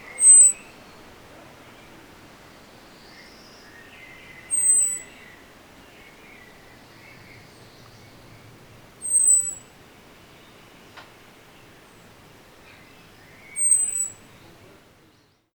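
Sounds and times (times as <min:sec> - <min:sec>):
common blackbird thin high whistles: 0:00.0 - 0:00.6, 0:04.5 - 0:05.1, 0:09.0 - 0:09.6, 0:13.5 - 0:14.2
faint bird warbling: 0:00.0 - 0:00.8, 0:04.5 - 0:05.2, 0:07.3 - 0:09.7, 0:13.5 - 0:14.2
background hiss: 0:00.0 - 0:15.5.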